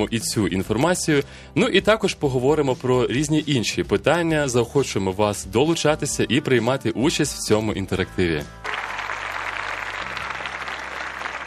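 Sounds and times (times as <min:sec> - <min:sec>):
speech: 0:00.0 - 0:08.7
loud applause: 0:08.6 - 0:11.4.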